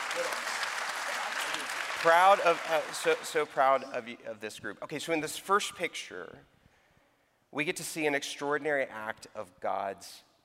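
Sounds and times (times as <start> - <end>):
people cheering faintly: 0.0 - 3.7
audience applause: 0.0 - 3.8
speech: 2.0 - 6.5, 7.5 - 10.3.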